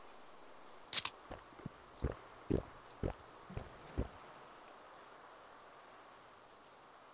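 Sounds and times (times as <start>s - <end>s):
person drinking: 0.9s - 4.2s.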